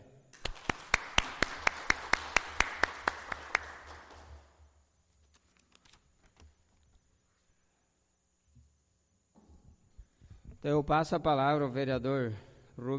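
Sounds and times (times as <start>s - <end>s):
applause for a newly sworn-in councillor: 0.4s - 4.6s
speech: 10.6s - 12.9s.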